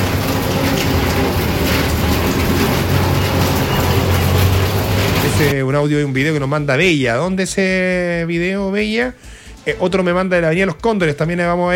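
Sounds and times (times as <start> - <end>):
low rumbling hum: 0.0 - 5.5
steady dense rain: 0.0 - 5.6
speech: 5.4 - 11.7.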